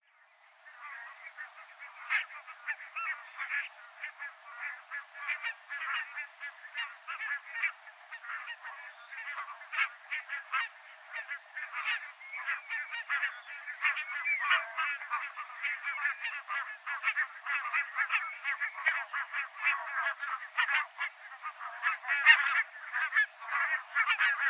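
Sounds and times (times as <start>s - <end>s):
barnacle geese chattering with nasal yaps: 0.7s - 24.4s.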